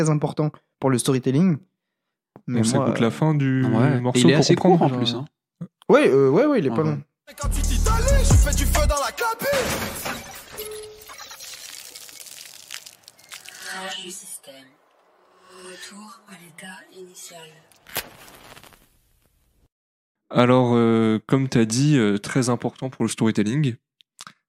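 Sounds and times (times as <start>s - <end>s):
speech: 0.0s - 1.7s, 2.4s - 10.3s, 13.8s - 14.7s, 15.7s - 18.6s, 20.3s - 23.9s
simulated system crash ending a song: 9.4s - 15.2s.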